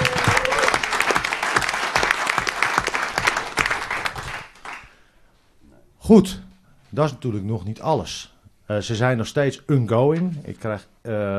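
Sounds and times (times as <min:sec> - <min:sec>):
crowd clapping: 0:00.0 - 0:05.0
speech: 0:06.1 - 0:11.3.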